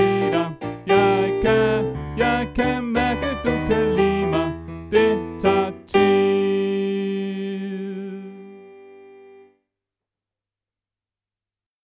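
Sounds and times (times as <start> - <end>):
soprano voice: 0.0 - 8.7.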